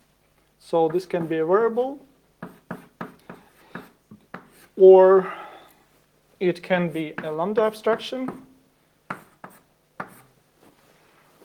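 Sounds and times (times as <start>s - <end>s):
speech: 0.7s - 2.1s, 4.8s - 5.4s, 6.4s - 8.5s
writing on a board: 0.9s - 1.4s, 2.4s - 4.8s, 6.9s - 8.5s, 9.1s - 10.8s.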